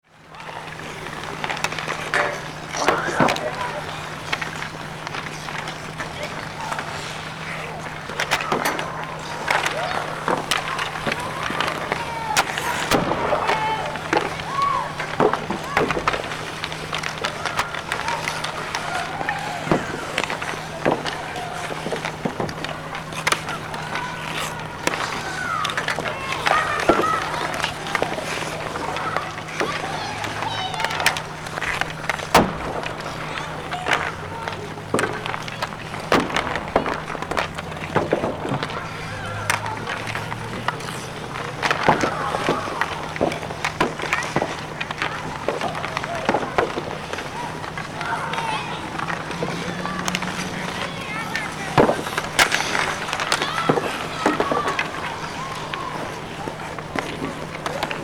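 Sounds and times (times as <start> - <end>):
Red Deer pond hockey practice: 0.0 - 58.0.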